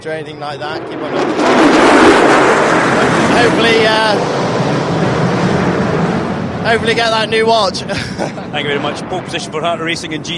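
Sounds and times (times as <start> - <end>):
speech: 0.0 - 4.5, 6.6 - 10.3
aircraft flyover: 0.0 - 10.3
laughter: 7.7 - 9.1.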